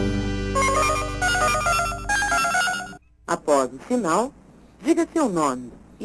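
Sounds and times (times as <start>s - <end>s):
telephone melodic ringtone: 0.6s - 3.0s
speech: 3.6s - 6.0s.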